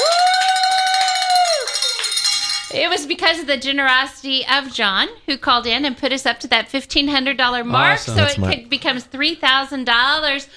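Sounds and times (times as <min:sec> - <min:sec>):
handbell being rung: 0:00.6 - 0:02.8
speech: 0:02.8 - 0:10.5.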